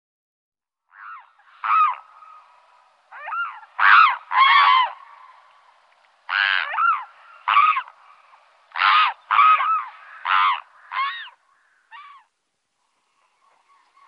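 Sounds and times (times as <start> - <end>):
mute swan honking: 0.9 - 5.4, 6.3 - 12.3.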